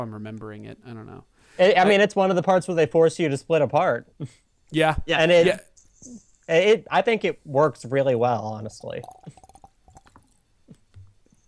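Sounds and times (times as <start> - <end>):
speech: 0.0 - 9.4
person drinking water: 9.0 - 11.3.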